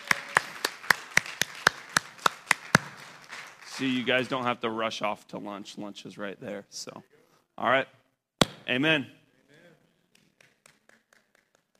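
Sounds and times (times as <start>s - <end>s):
audience clapping: 0.0s - 4.5s, 10.1s - 11.7s
speech: 3.8s - 8.0s, 8.7s - 9.2s.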